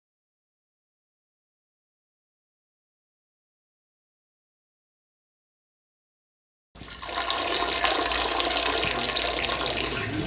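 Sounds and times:
person urinating: 6.8 - 10.2.

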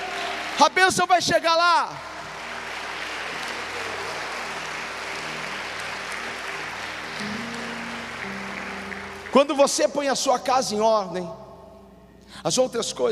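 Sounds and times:
audience applause: 0.0 - 1.2, 2.0 - 9.9
speech: 0.6 - 2.1, 9.3 - 11.4, 12.4 - 13.1.

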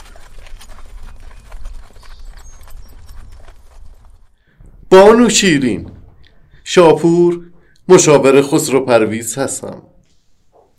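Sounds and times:
horse galloping: 0.0 - 4.8
speech: 4.9 - 6.0, 6.7 - 10.0.

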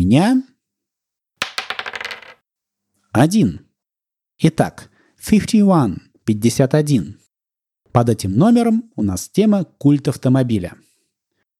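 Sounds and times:
speech: 0.1 - 0.5, 3.1 - 3.6, 4.4 - 7.2, 7.9 - 10.9
die thrown onto a hard surface: 1.4 - 2.4.

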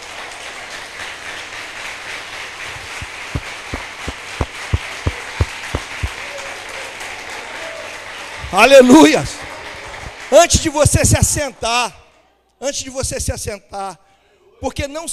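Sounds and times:
audience applauding: 0.0 - 11.7
speech: 8.5 - 9.4, 10.3 - 12.0, 12.6 - 14.0, 14.6 - 15.1.

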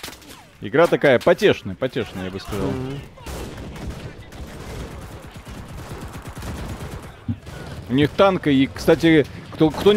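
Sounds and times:
speech: 0.6 - 3.3, 7.9 - 9.9
video game gunfire shooting at bots: 2.1 - 9.9.

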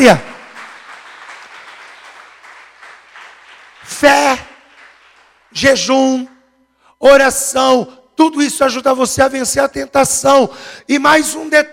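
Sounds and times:
speech: 0.0 - 0.3, 4.0 - 4.5, 5.5 - 6.3, 7.0 - 11.7
audience applauding: 0.0 - 5.6.

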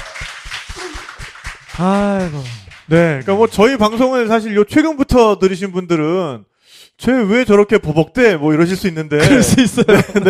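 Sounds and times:
audience applause: 0.0 - 4.1
speech: 1.8 - 10.2.

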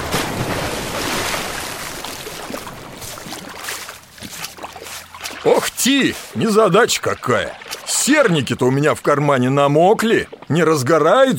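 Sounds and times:
water sloshing and splashing against a small boat hull at the shore: 0.0 - 11.0
speech: 5.4 - 11.3.

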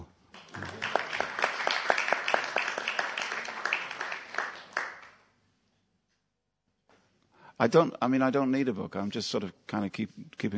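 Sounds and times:
audience applause: 0.4 - 5.2
speech: 7.6 - 10.5.

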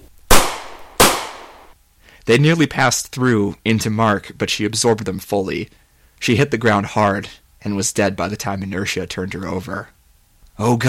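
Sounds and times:
gunshots in a dramatized scene: 0.3 - 1.7
speech: 2.3 - 10.0, 10.6 - 10.8.

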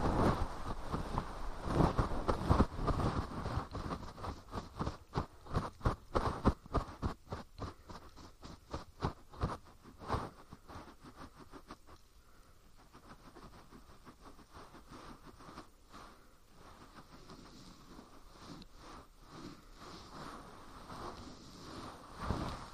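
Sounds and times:
fluffy ear cleaning scratchy rustles: 0.0 - 22.7.

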